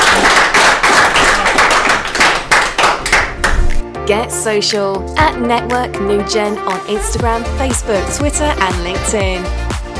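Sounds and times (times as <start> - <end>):
audience round of applause: 0.0 - 3.8
speech: 4.1 - 9.6.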